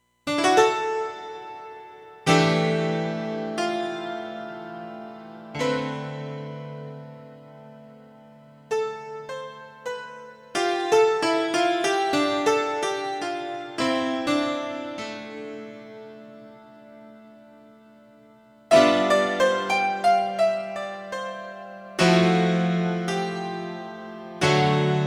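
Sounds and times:
piano: 0.3s - 25.0s.

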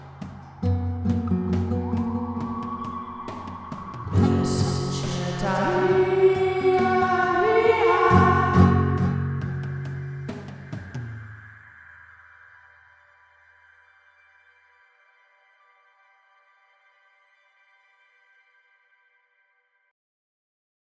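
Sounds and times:
medicine chant: 0.0s - 10.7s.

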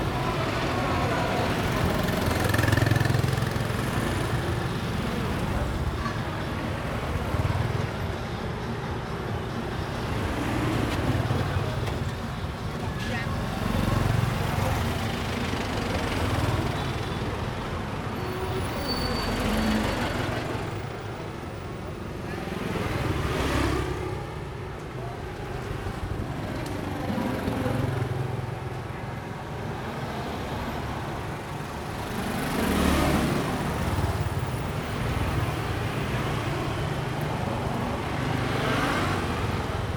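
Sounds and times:
street traffic on Preah Sisowath Quay in Cambodia: 0.0s - 39.9s.

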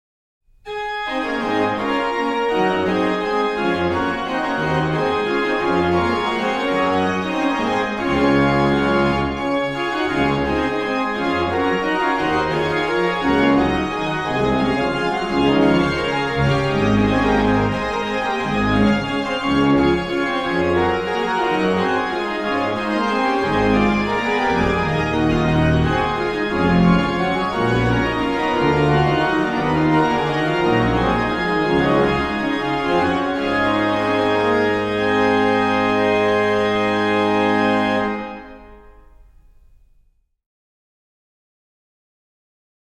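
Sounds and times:
organ music: 0.7s - 39.9s.

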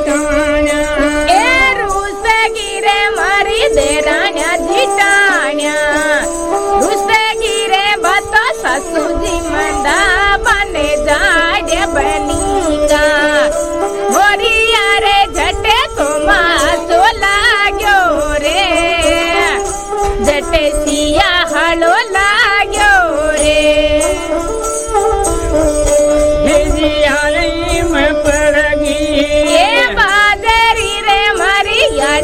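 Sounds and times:
music in India: 0.0s - 32.2s.

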